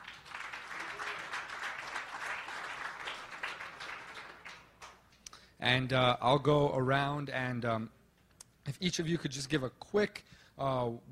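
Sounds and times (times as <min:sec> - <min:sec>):
crowd applauding: 0:00.0 - 0:05.0
speech: 0:05.6 - 0:08.0, 0:08.7 - 0:11.0.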